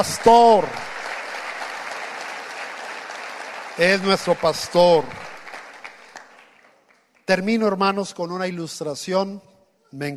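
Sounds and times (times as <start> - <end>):
speech: 0.0 - 0.9, 3.8 - 5.2, 7.3 - 10.1
church congregation applauding God during a service: 0.0 - 8.1.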